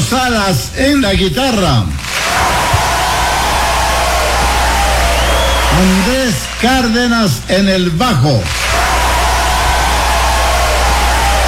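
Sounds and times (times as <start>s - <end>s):
speech: 0.1s - 2.0s, 5.8s - 8.6s
audience applause for guitarist: 2.0s - 7.5s, 8.4s - 11.4s.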